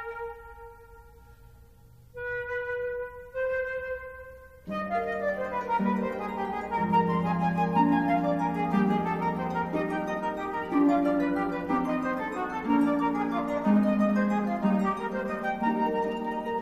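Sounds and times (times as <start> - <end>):
flute: 0.0 - 16.6
harp: 0.0 - 16.6.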